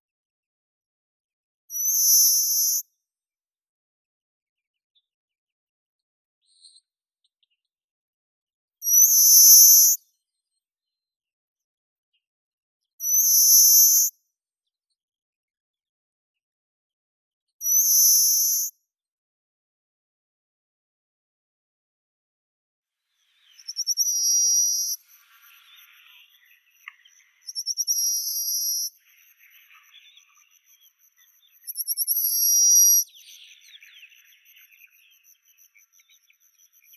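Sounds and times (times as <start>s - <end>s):
Carpospiza brachydactyla sparrow calling: 23.2s - 36.9s.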